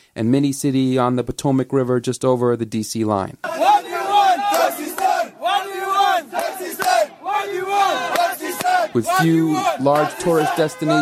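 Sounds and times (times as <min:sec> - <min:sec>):
speech: 0:00.2 - 0:03.8, 0:09.0 - 0:10.9
protesters chanting: 0:03.4 - 0:10.9.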